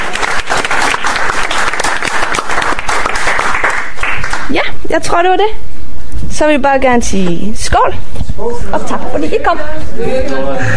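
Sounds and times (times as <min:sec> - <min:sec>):
audience applause: 0:00.0 - 0:04.5
speech: 0:04.9 - 0:05.7, 0:06.4 - 0:10.7.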